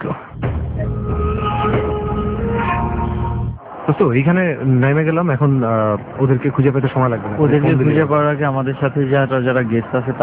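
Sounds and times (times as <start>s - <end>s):
bus engine hum with passengers: 0.0s - 3.7s
speech: 3.9s - 10.2s.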